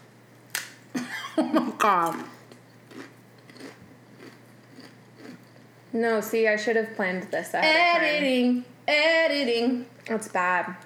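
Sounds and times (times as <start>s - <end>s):
speech: 1.4s - 2.4s, 5.9s - 10.8s
crunchy chips being chewed: 2.0s - 5.7s.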